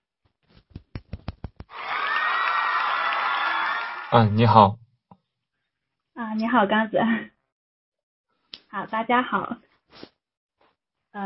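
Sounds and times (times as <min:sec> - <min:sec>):
audience applause: 0:01.2 - 0:04.6
speech: 0:04.1 - 0:04.8, 0:06.4 - 0:07.3, 0:08.7 - 0:10.1.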